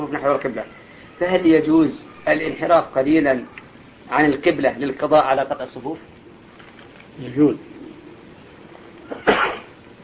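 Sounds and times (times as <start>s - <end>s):
speech: 0.1s - 6.1s, 7.2s - 7.7s
sneeze: 9.1s - 9.8s.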